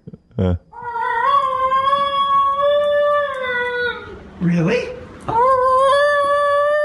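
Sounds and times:
speech: 0:00.4 - 0:00.6, 0:04.4 - 0:05.4
person imitating Basenji dog yodel howl: 0:00.8 - 0:04.1, 0:05.3 - 0:06.8.

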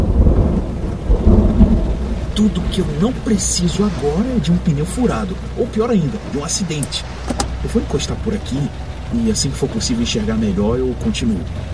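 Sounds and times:
thunderclap during heavy rainstorm: 0:00.0 - 0:07.7
heavy rainstorm: 0:00.0 - 0:11.7
speech: 0:02.4 - 0:11.7.

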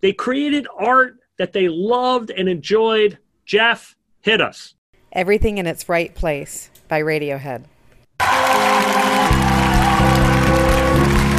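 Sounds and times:
speech: 0:00.0 - 0:09.4
clapping: 0:08.2 - 0:11.3.

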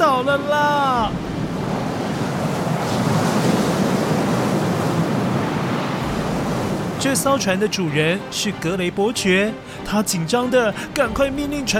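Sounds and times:
strong wind in a storm at sea: 0:00.0 - 0:07.4
waves around a cargo ship in a storm at sea: 0:00.0 - 0:11.7
speech: 0:07.0 - 0:11.7.

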